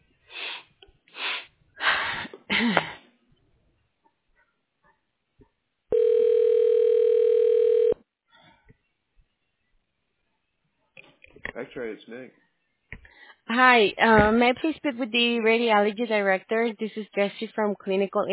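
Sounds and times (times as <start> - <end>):
speech: 2.6 - 2.8, 11.8 - 12.5, 13.5 - 18.3
telephone line tone during call transfer: 5.9 - 8.0.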